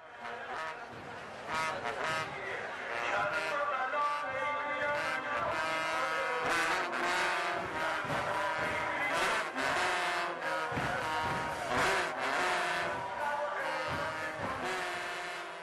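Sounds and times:
trumpet used in Shia mourning rites for Imam Hussein: 0.0 - 15.6
percussive accents: 6.4 - 15.1.

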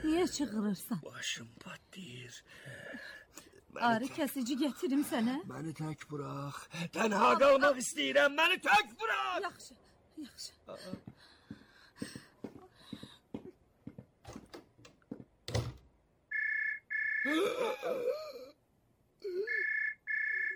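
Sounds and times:
speech: 0.0 - 11.3, 12.0 - 12.2, 17.3 - 18.4
telephone ringing electronically: 16.3 - 17.3, 19.5 - 20.5.

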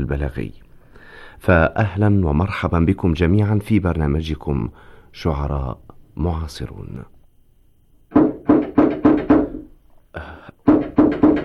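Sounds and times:
speech: 0.0 - 0.7, 1.4 - 7.1, 10.2 - 10.5
knocking on a door: 8.1 - 9.7, 10.6 - 11.4.

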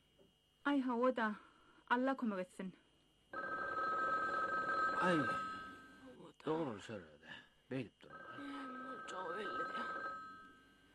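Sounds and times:
speech: 0.7 - 2.8, 5.0 - 5.5, 6.4 - 8.5, 9.1 - 10.0
telephone ringing: 3.4 - 6.0, 8.1 - 10.8.

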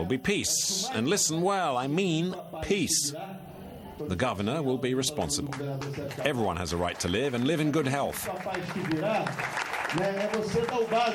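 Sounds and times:
speech: 0.0 - 11.1
audience applause: 5.5 - 11.1.

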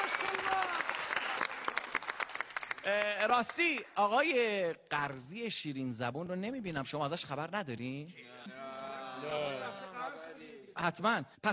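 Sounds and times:
audience applause at an Iranian variety show: 0.0 - 3.3
speech: 2.9 - 11.5.

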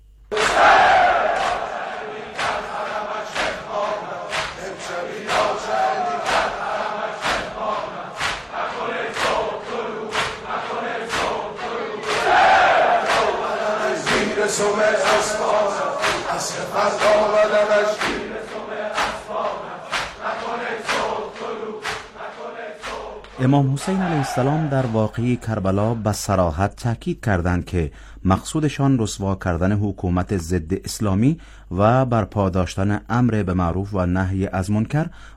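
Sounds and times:
mourning crowd shouting: 0.3 - 25.1
speech: 23.4 - 35.3.

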